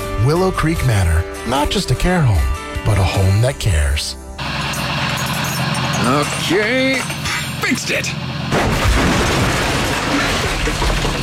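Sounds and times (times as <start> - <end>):
speech: 0.2 - 4.2, 6.0 - 8.3
trailer axle breaking off with crashing roar of grinding metal: 4.4 - 11.2.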